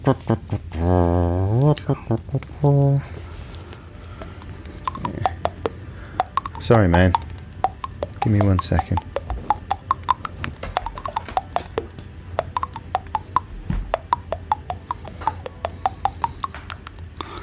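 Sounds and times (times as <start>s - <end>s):
speech: 0.0s - 1.0s, 1.9s - 3.2s, 6.6s - 7.2s, 8.2s - 9.1s
cartoon melody tapped on teeth: 4.1s - 17.4s.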